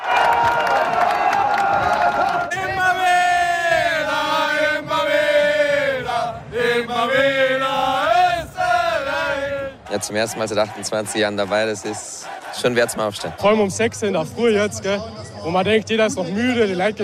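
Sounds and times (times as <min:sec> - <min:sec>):
football fans cheering: 0:00.0 - 0:15.0
football fans chanting: 0:01.7 - 0:13.7
speech: 0:10.0 - 0:17.0.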